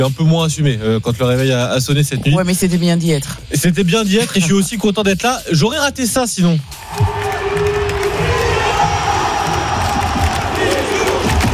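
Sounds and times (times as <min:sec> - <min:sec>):
speech: 0:00.0 - 0:07.4
crowd cheering at the Stade de France: 0:06.7 - 0:11.5.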